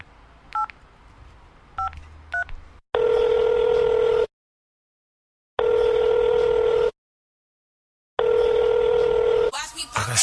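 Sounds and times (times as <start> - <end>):
phone ringing tones: 3.0 - 4.3, 5.6 - 6.9, 8.2 - 9.5.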